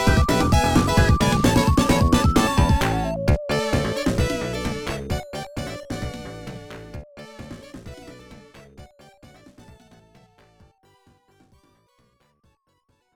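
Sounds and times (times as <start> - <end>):
slot machine bonus stage game music: 0.0 - 10.2.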